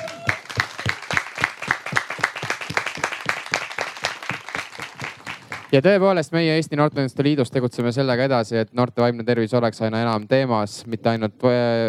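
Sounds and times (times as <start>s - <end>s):
crowd applause: 0.0s - 5.8s
speech: 5.7s - 11.8s.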